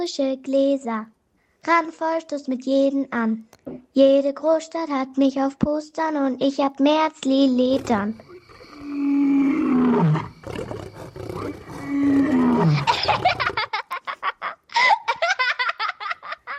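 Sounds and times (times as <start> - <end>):
speech: 0.0 - 8.3
big cat roaring: 7.7 - 13.6
giggling laughter: 12.6 - 16.5.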